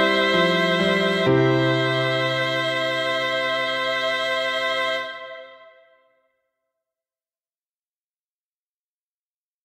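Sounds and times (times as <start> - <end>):
two violins: 0.0 - 5.7.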